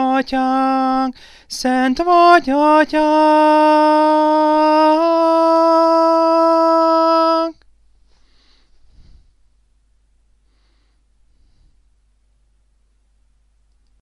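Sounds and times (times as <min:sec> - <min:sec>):
tenor singing a hymn: 0:00.0 - 0:07.6.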